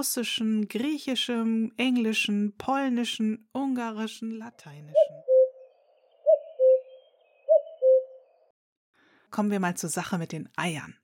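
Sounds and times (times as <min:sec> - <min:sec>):
speech: 0:00.0 - 0:05.3, 0:09.3 - 0:11.0
common cuckoo call: 0:05.0 - 0:08.4.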